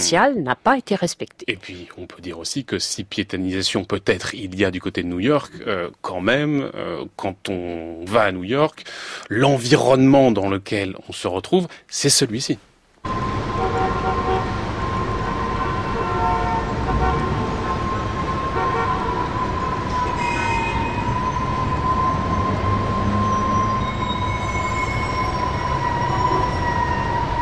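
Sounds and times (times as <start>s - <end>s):
speech: 0.0s - 12.7s
street and train noise of New York City: 13.0s - 27.3s
horn toots: 13.1s - 26.7s.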